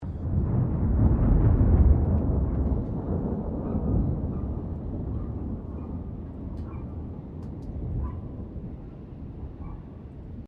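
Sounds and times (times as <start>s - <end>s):
thunder: 0.0s - 10.4s
distant dog barking: 3.6s - 6.0s, 6.6s - 7.0s, 8.0s - 8.4s, 9.6s - 9.9s.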